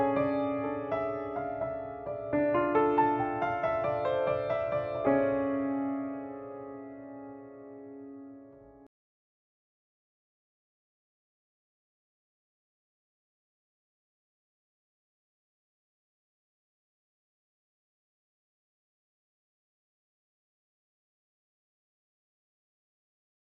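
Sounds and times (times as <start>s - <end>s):
dramatic piano: 0.0s - 8.9s.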